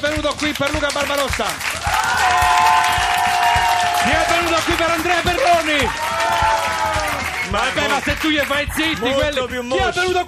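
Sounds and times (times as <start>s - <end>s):
speech: 0.2s - 2.6s, 4.0s - 6.8s, 7.5s - 10.2s
studio audience applause: 0.2s - 9.3s
sustained high cheer from a studio audience: 1.5s - 9.2s.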